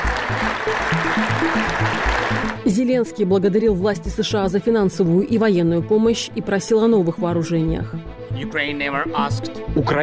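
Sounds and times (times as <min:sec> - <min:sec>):
applause from members of the US Congress: 0:00.0 - 0:02.6
speech: 0:02.7 - 0:10.0.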